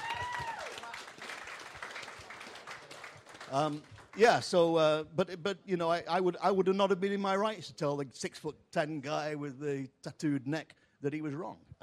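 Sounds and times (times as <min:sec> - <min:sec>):
audience applause: 0:00.0 - 0:04.6
speech: 0:03.5 - 0:11.8.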